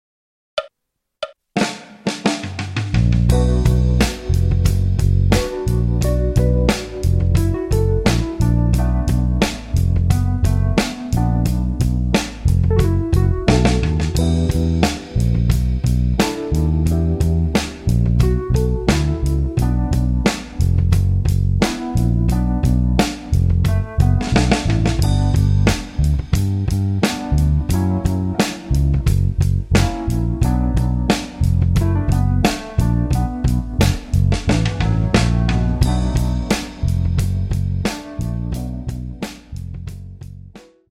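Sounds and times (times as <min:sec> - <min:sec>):
blues music: 0:01.6 - 0:40.9.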